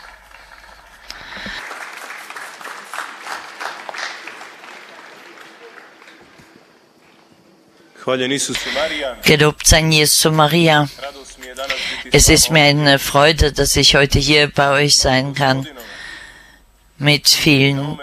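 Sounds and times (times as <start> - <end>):
audience applause: 0.0 - 7.0
speech: 8.1 - 11.1, 12.0 - 15.8, 17.0 - 18.0.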